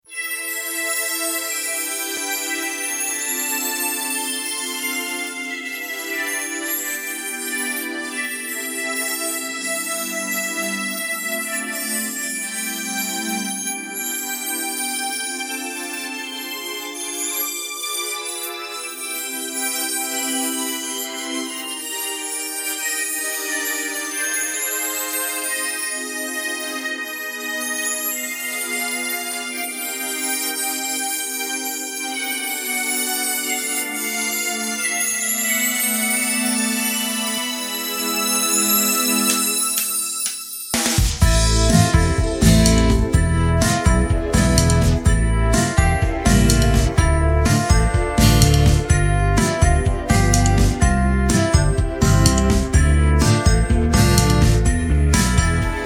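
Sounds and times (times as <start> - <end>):
instrumental music: 0.0 - 55.8.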